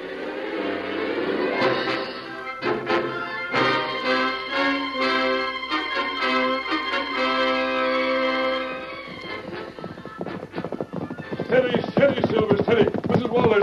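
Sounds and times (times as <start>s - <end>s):
music: 0.0s - 11.5s
hoofbeats of the horse Silver galloping in a radio drama: 6.1s - 13.6s.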